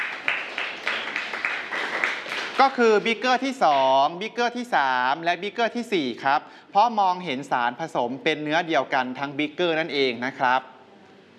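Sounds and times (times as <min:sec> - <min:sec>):
students in a Thai science class clapping in unison: 0:00.0 - 0:03.9
speech: 0:02.6 - 0:10.7.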